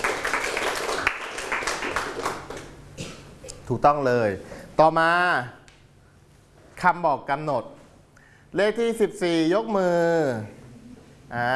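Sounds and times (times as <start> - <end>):
classmates clapping for a pupil: 0.0 - 2.8
speech: 3.7 - 5.6, 6.8 - 7.8, 8.5 - 10.6, 11.3 - 11.5.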